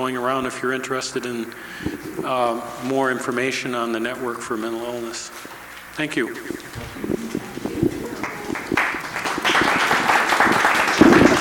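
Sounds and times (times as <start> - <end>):
speech: 0.0 - 7.4
audience applause: 6.5 - 11.3.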